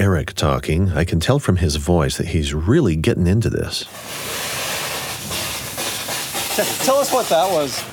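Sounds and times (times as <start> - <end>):
speech: 0.0 - 4.4, 6.6 - 7.9
biofoam spraying onto greenhouse cart wheels: 3.9 - 7.9.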